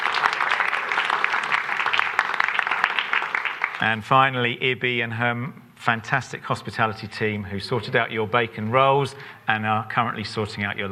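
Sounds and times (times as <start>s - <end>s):
crowd round of applause: 0.0s - 4.0s
speech: 3.8s - 10.9s.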